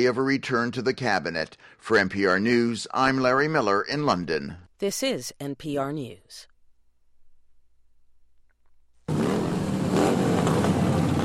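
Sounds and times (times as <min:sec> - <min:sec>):
speech: 0:00.0 - 0:06.5
motorcycles revving in Rolling Thunder demonstration in Washington, D.C.: 0:09.1 - 0:11.2.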